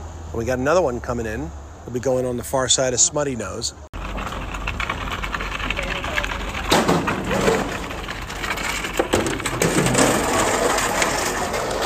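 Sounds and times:
speech: 0.3 - 3.9
lobster traps being brought down to a wharf: 4.0 - 11.8.

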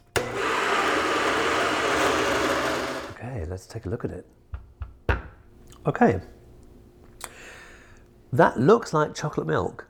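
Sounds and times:
blender pureeing boiled beans and water: 0.0 - 3.2
speech: 3.6 - 4.6, 5.8 - 6.4, 8.3 - 9.8.

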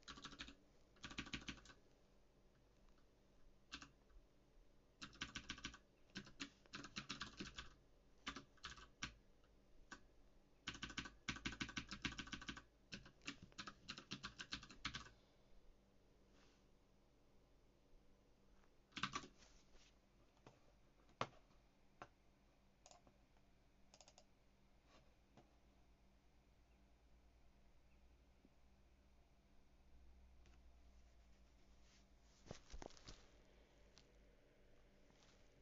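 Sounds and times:
typing on a mechanical keyboard: 0.0 - 1.8, 3.7 - 4.0, 5.0 - 9.2, 10.6 - 15.1, 18.9 - 19.3, 23.9 - 24.3.

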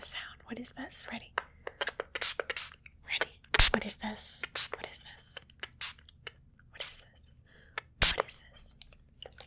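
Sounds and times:
speech: 0.0 - 1.5, 3.8 - 5.4
spray bottle spraying: 1.8 - 2.8, 3.6 - 3.8, 4.4 - 4.8, 5.6 - 6.0, 8.0 - 8.2.

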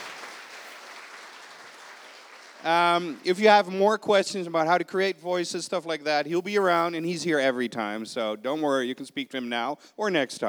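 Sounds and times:
crowd clapping: 0.0 - 3.7
speech: 2.6 - 10.4.

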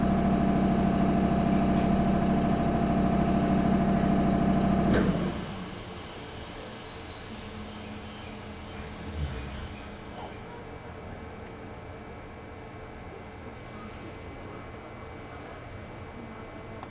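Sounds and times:
Chuo East Line local train motor drone: 0.0 - 10.4
quieter even rumble of train: 4.8 - 11.6.

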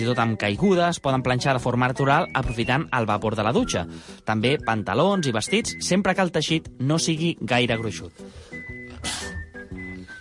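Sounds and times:
speech: 0.0 - 9.2
sneeze: 9.0 - 9.4.

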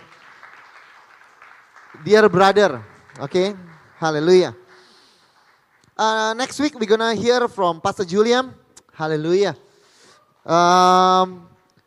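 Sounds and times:
audience applause: 0.0 - 6.4
speech: 1.9 - 4.6, 6.0 - 9.6, 10.4 - 11.5.

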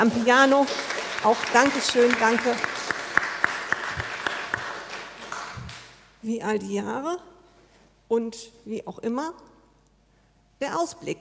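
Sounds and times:
speech: 0.0 - 2.8, 6.2 - 7.3, 8.1 - 9.5, 10.6 - 11.2
audience applause: 0.0 - 5.9.

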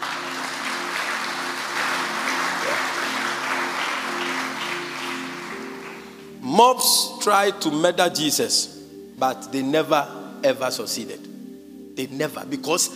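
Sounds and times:
audience clapping: 0.0 - 6.4
speech: 6.6 - 11.3, 12.0 - 12.9.

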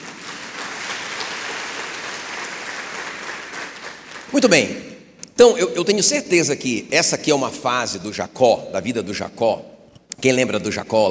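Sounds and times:
audience applauding: 0.0 - 4.7
speech: 4.3 - 11.0.

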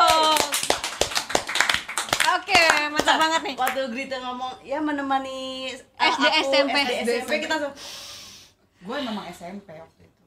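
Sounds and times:
hand clapping: 0.0 - 3.9
speech: 3.0 - 8.1, 8.8 - 10.2.

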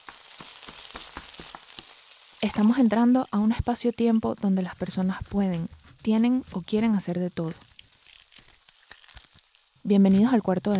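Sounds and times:
rain starting to fall in Medellín: 0.0 - 3.6
speech: 2.4 - 7.7, 9.9 - 10.7.

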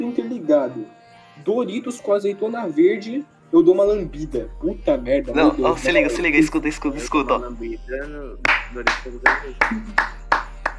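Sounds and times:
speech: 0.1 - 10.2
clapping: 8.4 - 10.7.

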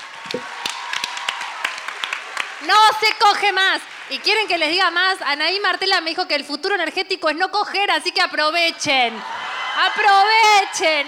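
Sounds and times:
scattered hand claps: 0.0 - 4.5
speech: 0.3 - 0.6, 2.6 - 11.0.

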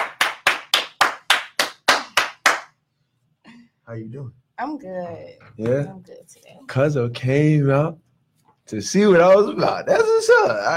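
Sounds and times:
round of applause: 0.0 - 2.7
speech: 3.9 - 8.0, 8.7 - 10.7.

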